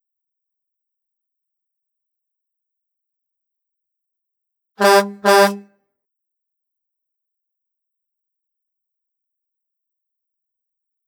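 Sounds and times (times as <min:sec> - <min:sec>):
Hoover Dam horn blast: 0:04.8 - 0:05.6.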